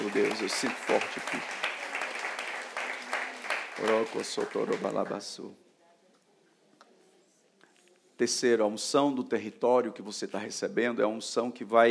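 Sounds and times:
audience applauding: 0.0 - 5.3
speech: 0.1 - 1.7, 3.8 - 5.6, 8.2 - 11.8.

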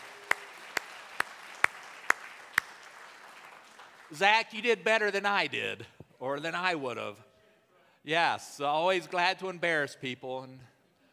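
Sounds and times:
faint hand claps from a church congregation: 0.0 - 4.1
speech: 4.1 - 7.3, 8.0 - 10.7.

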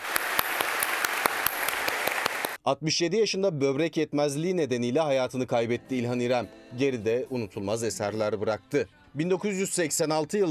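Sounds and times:
funeral ceremony applause: 0.0 - 2.6
speech: 2.6 - 10.4.

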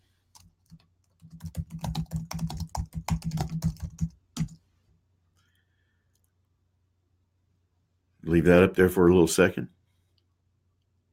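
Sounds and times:
typing on a computer keyboard: 0.4 - 4.6
speech: 8.3 - 9.8.

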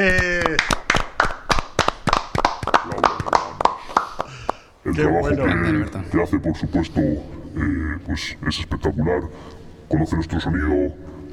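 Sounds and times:
small group clapping: 0.0 - 4.8
speech: 5.0 - 11.3.

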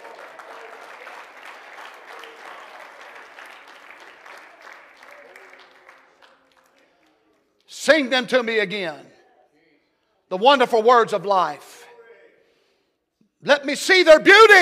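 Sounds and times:
audience clapping: 0.0 - 7.7
speech: 7.9 - 9.1, 10.3 - 11.7, 13.4 - 14.5.

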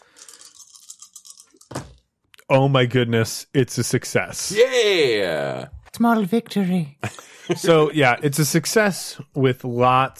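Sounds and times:
dice rolling: 0.1 - 2.0
speech: 2.5 - 10.1.

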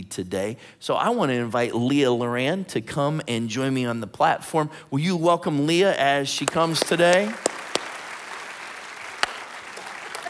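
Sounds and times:
speech: 0.1 - 7.6
high five hand slaps at a church service: 6.5 - 8.0, 9.2 - 9.4.

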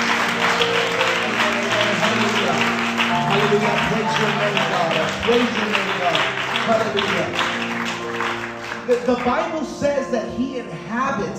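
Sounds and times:
church congregation clapping hands in praise during worship: 0.0 - 9.8
speech: 3.6 - 7.5, 8.9 - 11.3.

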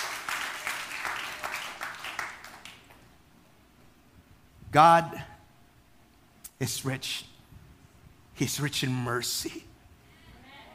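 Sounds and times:
church congregation applauding during an Easter Sunday sermon: 0.0 - 3.1
speech: 4.7 - 5.3, 6.6 - 7.3, 8.4 - 9.7.

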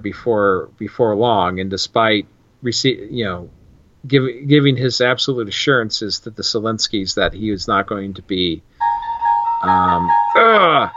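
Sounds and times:
speech: 0.0 - 8.7, 9.6 - 10.9
mobile phone ringing: 8.8 - 10.9.

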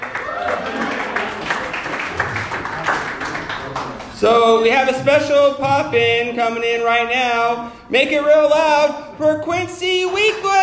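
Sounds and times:
audience applause: 0.0 - 4.2
speech: 4.2 - 10.4.

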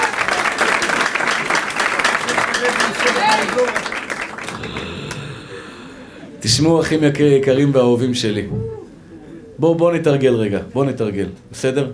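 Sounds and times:
audience applause: 0.0 - 6.3
speech: 3.0 - 3.9, 6.4 - 8.8, 9.6 - 11.9.

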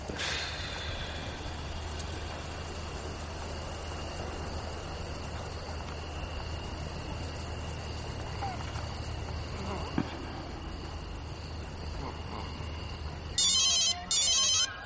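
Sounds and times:
outdoor noise: 0.0 - 14.8
mobile phone ringing: 13.4 - 14.8.

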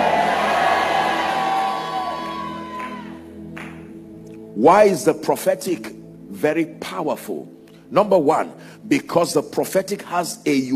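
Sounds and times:
audience shouting amen: 0.0 - 3.2
speech: 4.6 - 10.7.

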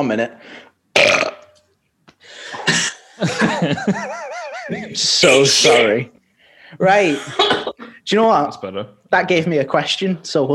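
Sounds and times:
speech: 0.0 - 1.4, 2.7 - 10.5
rasping burp played as quiz buzzer: 1.0 - 1.6, 2.5 - 3.1
laughter: 3.0 - 5.5.

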